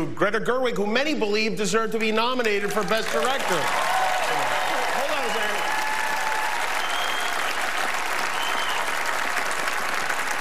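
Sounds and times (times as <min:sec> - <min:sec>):
speech: 0:00.0 - 0:03.9
audience clapping: 0:02.4 - 0:10.4.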